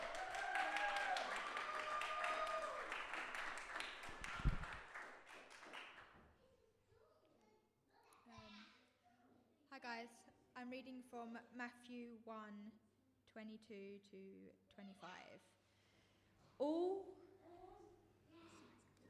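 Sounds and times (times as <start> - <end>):
audience applause: 0.0 - 6.0
speech: 10.0 - 15.6, 16.6 - 17.2.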